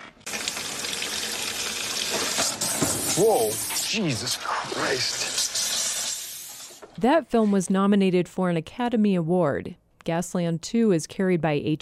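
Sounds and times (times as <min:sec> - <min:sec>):
water gushing from a home faucet in the film Gasland: 0:00.1 - 0:06.9
speech: 0:03.2 - 0:05.3, 0:07.0 - 0:11.8.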